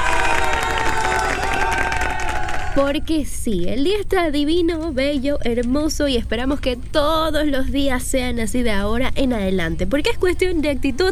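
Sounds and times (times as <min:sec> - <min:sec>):
applause: 0:00.0 - 0:02.8
cheering: 0:00.0 - 0:02.9
speech: 0:02.8 - 0:11.0.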